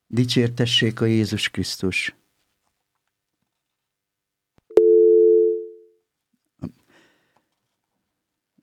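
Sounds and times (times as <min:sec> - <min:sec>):
speech: 0:00.1 - 0:02.2
telephone line tone of an incoming call that fails to connect: 0:04.7 - 0:05.8.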